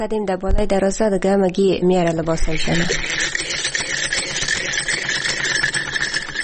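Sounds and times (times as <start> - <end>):
speech: 0.0 - 3.4
sewing machine running: 2.3 - 6.4.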